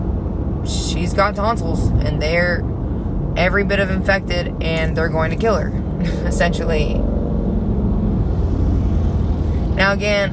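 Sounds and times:
speech: 0.6 - 2.7, 3.4 - 7.2, 9.8 - 10.3
motorcycle engine roaring as it passes by: 5.5 - 9.8.

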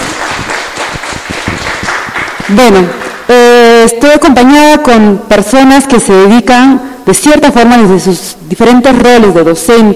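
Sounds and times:
audience clapping: 0.0 - 3.3
speech: 2.5 - 9.9.

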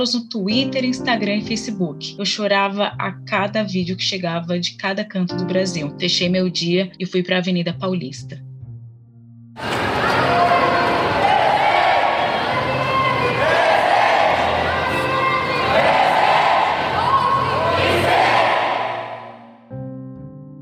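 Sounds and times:
speech: 0.0 - 8.5, 9.6 - 10.0
loud crowd chanting at a protest: 9.6 - 19.5.

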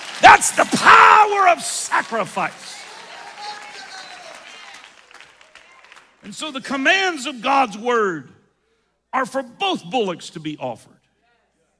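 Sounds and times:
audience clapping hands: 0.0 - 6.9
speech: 0.3 - 2.9, 6.2 - 8.4, 9.1 - 11.0.

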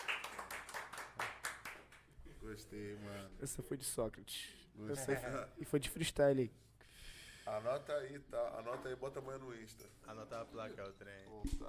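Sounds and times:
hands clapping: 0.0 - 2.1
speech: 2.5 - 6.7, 7.4 - 11.6.

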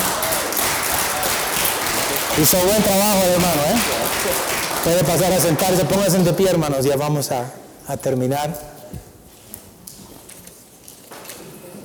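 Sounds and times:
audience applause: 0.0 - 6.6
speech: 2.4 - 8.7.

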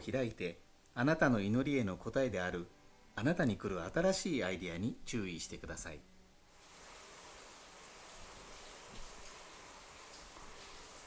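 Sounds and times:
speech: 0.0 - 6.1
sudden rain falling: 6.6 - 11.0.

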